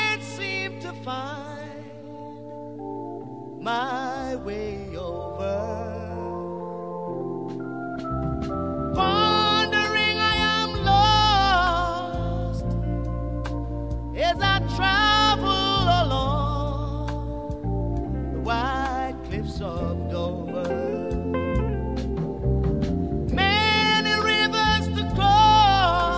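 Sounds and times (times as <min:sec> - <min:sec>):
reggae music: 0:00.0 - 0:26.1.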